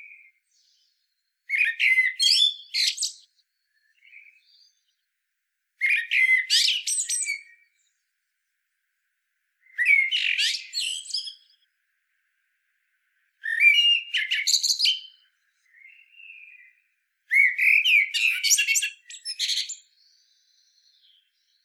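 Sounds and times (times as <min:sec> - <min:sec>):
common blackbird singing: 0:00.0 - 0:05.0, 0:05.8 - 0:07.9, 0:09.6 - 0:11.6, 0:13.4 - 0:21.6.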